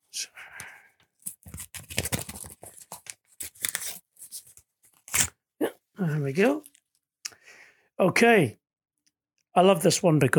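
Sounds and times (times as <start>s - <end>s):
golden envelope paper tearing and rustling: 1.2s - 5.4s
speech: 6.0s - 6.7s, 8.0s - 8.6s, 9.6s - 10.3s.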